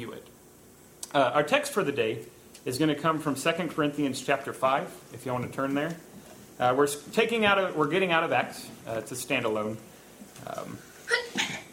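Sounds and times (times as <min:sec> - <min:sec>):
speech: 0:01.1 - 0:11.4
sneeze: 0:11.1 - 0:11.7.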